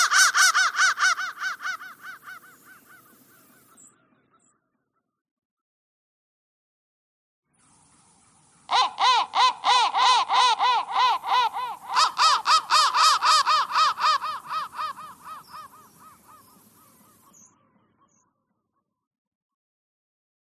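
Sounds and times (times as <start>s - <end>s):
crow calling harshly: 0.0s - 3.8s, 8.7s - 17.4s.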